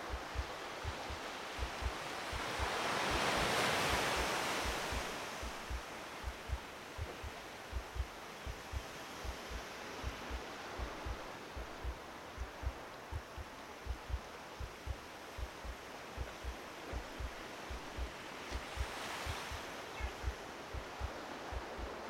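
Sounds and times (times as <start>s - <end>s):
waves on a beach: 0.0s - 22.0s.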